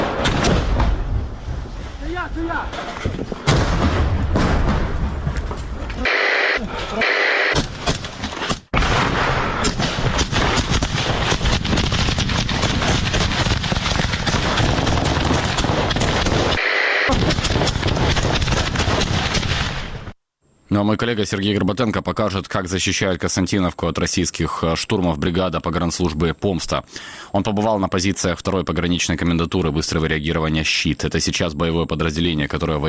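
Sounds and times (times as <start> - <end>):
grenade explosion in a combat setting: 0.0 - 1.2, 3.4 - 5.4, 6.1 - 20.2
speech: 2.3 - 3.1, 20.8 - 32.8
crackling bursts like gunfire: 8.7 - 20.1.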